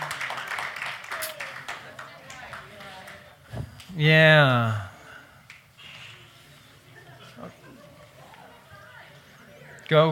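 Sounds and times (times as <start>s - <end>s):
clapping: 0.0s - 3.2s
speech: 4.0s - 4.9s, 9.9s - 10.0s.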